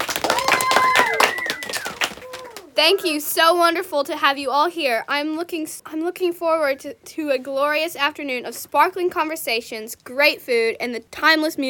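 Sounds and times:
audience applauding: 0.0s - 2.8s
voices over clapping: 0.0s - 2.8s
whistle-like tones: 0.7s - 2.0s
speech: 2.8s - 11.6s.

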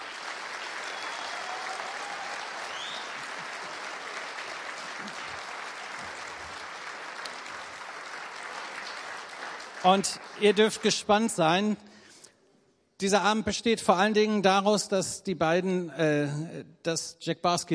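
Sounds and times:
audience applause: 0.0s - 11.4s
speech: 9.8s - 11.9s, 13.0s - 17.7s.

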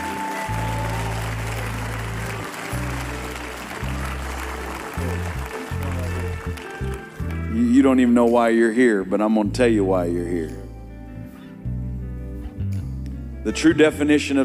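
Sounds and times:
crowd clapping: 0.0s - 7.4s
music with deep sustained bass notes: 0.0s - 14.4s
speech: 7.8s - 10.6s, 13.5s - 14.4s.

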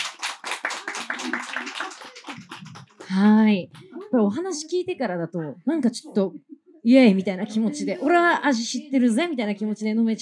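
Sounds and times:
audience applause: 0.0s - 4.1s
speech: 3.1s - 10.2s.

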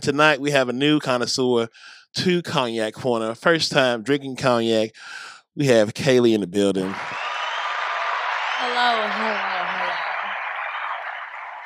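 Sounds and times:
speech: 0.0s - 7.2s, 8.6s - 9.6s
extended audience applause at a cognac-tasting show: 6.8s - 11.6s.

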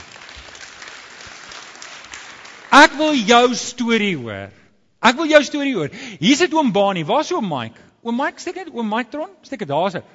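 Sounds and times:
audience applauding: 0.0s - 2.9s
speech: 2.7s - 10.1s.

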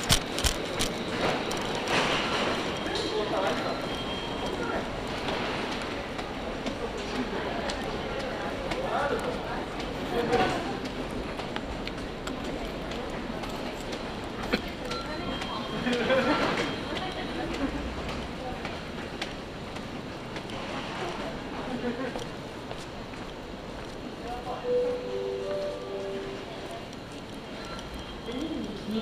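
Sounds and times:
Izu-Hakone Railway and Tokaido Line train carriage rumbling: 0.0s - 29.0s
short tonal chime: 24.7s - 26.6s.

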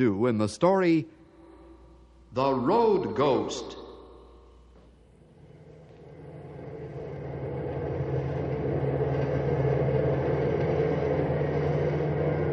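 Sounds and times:
speech: 0.0s - 1.2s, 2.3s - 3.8s
bus engine roaring on highway: 6.0s - 12.5s.

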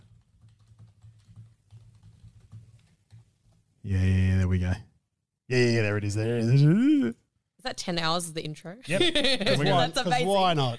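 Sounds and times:
typing on a computer keyboard to enter a search: 0.0s - 3.6s
speech: 3.9s - 4.9s, 5.5s - 10.7s
laughter: 8.9s - 10.7s.

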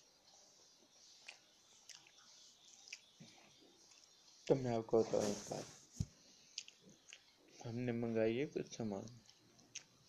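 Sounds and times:
person chewing black chickpeas: 0.2s - 4.6s, 6.4s - 7.6s, 9.0s - 10.0s
speech: 4.5s - 5.8s, 7.6s - 9.2s.

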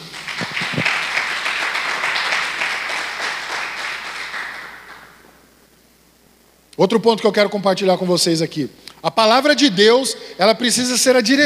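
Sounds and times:
audience applauding: 0.0s - 5.3s
speech: 6.8s - 11.4s.

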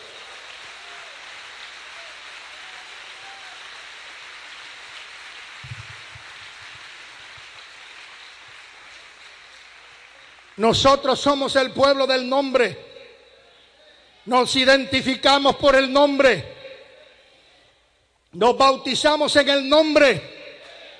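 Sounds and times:
audience applause: 0.0s - 10.7s
speech: 10.6s - 12.8s, 14.3s - 16.5s, 18.3s - 20.3s.

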